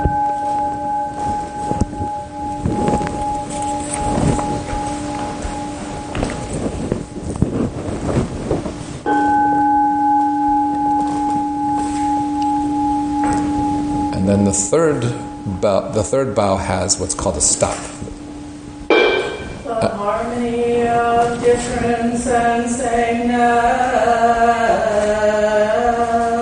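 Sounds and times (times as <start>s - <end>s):
large meditation bell ringing: 0.0s - 7.3s, 9.0s - 19.8s
wind-like rustling noise: 0.0s - 15.9s, 16.9s - 26.4s
speech: 14.7s - 18.0s.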